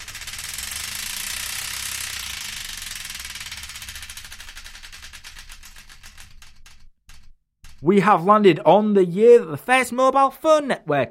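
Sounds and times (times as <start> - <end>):
Wheel of Destiny spinning prize wheel clicking: 0.0 - 8.1
speech: 7.8 - 11.0.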